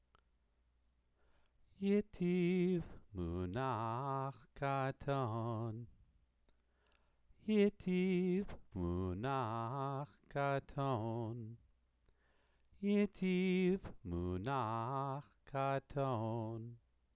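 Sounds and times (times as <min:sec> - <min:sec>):
person chanting scripture: 0:01.8 - 0:05.9, 0:07.5 - 0:11.6, 0:12.8 - 0:16.8.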